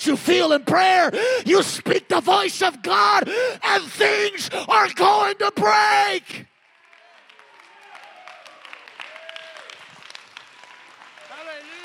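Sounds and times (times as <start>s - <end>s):
speech: 0.0s - 6.5s
audience clapping hands: 6.5s - 11.8s.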